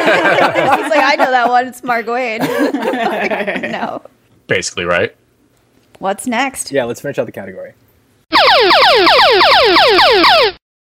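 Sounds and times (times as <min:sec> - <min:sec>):
laughter: 0:00.0 - 0:01.7, 0:02.4 - 0:04.0
speech: 0:01.1 - 0:05.2, 0:06.0 - 0:10.6
quiz show sound effect of bright electronic tones: 0:08.3 - 0:10.6.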